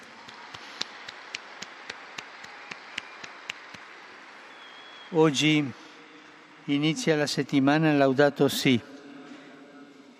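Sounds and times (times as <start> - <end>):
audience applause in a large space: 0.0 - 5.1
speech: 5.1 - 5.8, 6.7 - 8.9.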